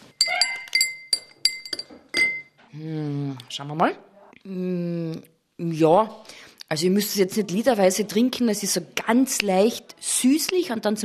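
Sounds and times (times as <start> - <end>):
glass clinking while preparing drink from sachet: 0.0 - 2.6
speech: 2.8 - 11.0.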